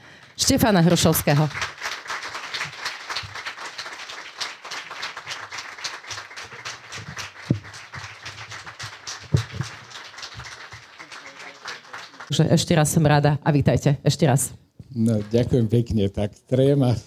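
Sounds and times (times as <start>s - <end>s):
audience applause welcoming a professor on stage: 0.1s - 12.4s
speech: 0.4s - 1.7s, 12.5s - 17.0s
sharp individual claps: 1.1s - 12.3s.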